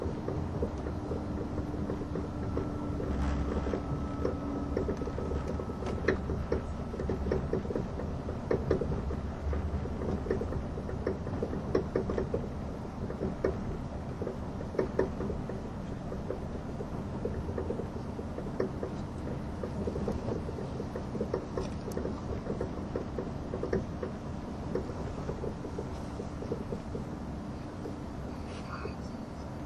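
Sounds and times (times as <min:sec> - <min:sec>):
faint clicks and rattles: 0:00.0 - 0:29.6
train running on the Gotthard Base Tunnel route: 0:00.0 - 0:29.6
thin whine: 0:02.4 - 0:06.0.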